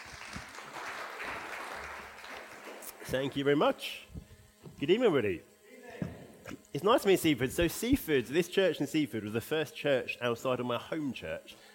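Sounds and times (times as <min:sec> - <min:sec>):
faint audience applause in a church in Seaford: 0:00.0 - 0:03.5
speech: 0:03.1 - 0:04.2, 0:04.8 - 0:05.5, 0:06.8 - 0:11.7.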